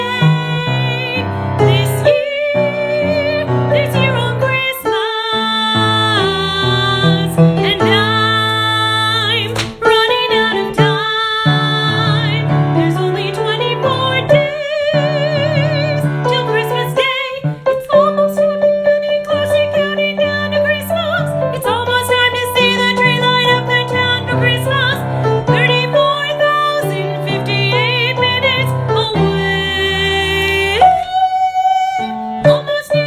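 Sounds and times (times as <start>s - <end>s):
soprano voice counting: 0.0s - 33.0s.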